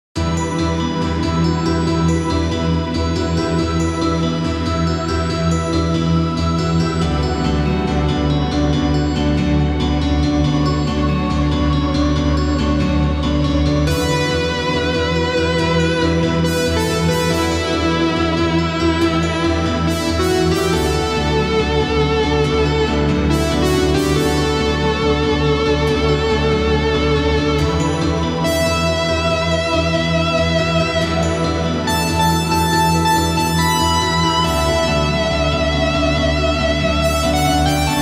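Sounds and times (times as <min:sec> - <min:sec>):
space debris themed music: 0:00.2 - 0:38.0.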